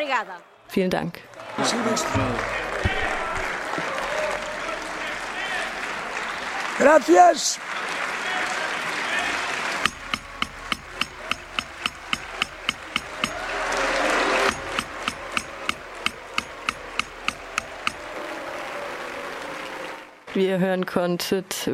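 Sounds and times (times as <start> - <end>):
speech: 0.0 - 3.1, 6.8 - 7.9, 20.4 - 21.7
assembly crowd clapping: 1.2 - 20.4
murmur of voices: 1.4 - 20.0
sharp rhythmic claps or knocks in assembly: 2.0 - 18.7.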